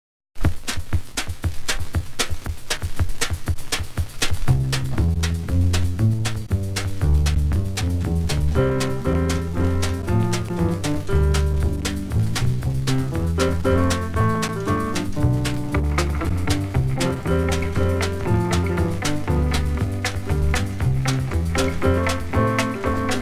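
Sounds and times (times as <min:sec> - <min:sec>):
instrumental music: 0:00.5 - 0:23.1.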